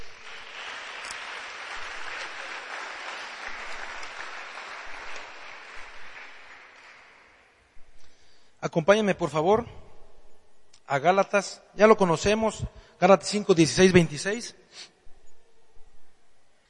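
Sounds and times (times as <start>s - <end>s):
audience applause: 0.0s - 7.6s
speech: 8.6s - 9.8s, 10.9s - 15.0s.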